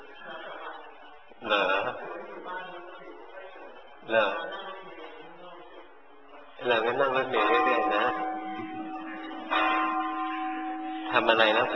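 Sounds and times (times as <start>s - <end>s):
speech: 6.7s - 8.3s, 11.1s - 11.7s
bell ringing: 6.7s - 11.7s.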